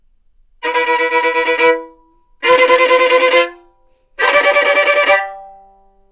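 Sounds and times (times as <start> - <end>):
angry violin: 0.6 - 3.6, 4.2 - 5.4.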